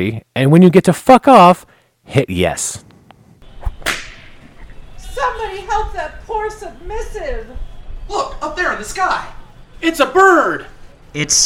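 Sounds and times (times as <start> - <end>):
speech: 0.0 - 2.9, 5.4 - 11.4
flogger whip crack: 3.6 - 4.4.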